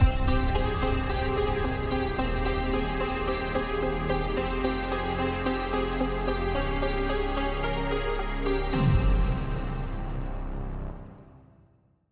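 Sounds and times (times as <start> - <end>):
mysterious ident jingle: 0.0 - 11.0.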